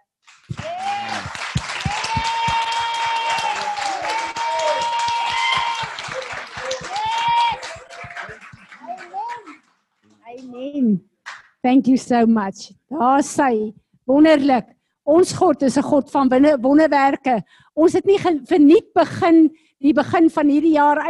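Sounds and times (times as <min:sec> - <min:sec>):
large gathering clapping hands: 0:00.2 - 0:11.6
scattered whoops and voices cheering: 0:00.5 - 0:09.6
speech: 0:11.6 - 0:21.0.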